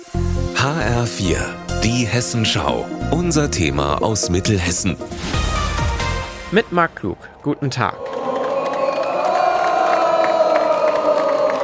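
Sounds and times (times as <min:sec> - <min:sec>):
speech: 0:00.6 - 0:05.6, 0:06.5 - 0:08.1
festival crowd cheering and shouting: 0:07.0 - 0:11.6.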